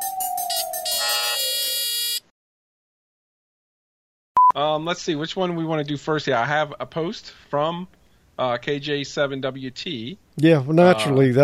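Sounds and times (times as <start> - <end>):
buzzer: 0.8 - 2.2
speech: 4.6 - 11.4.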